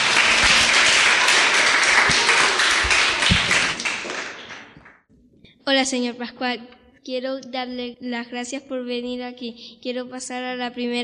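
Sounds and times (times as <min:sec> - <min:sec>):
children applauding: 0:00.0 - 0:04.9
speech: 0:05.7 - 0:11.0.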